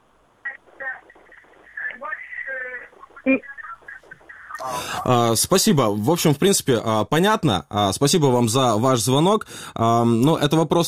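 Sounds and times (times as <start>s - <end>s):
radio receiver playing loudly behind a caller on a telephone line: 0.0s - 5.7s
speech: 3.2s - 3.5s, 4.6s - 10.8s.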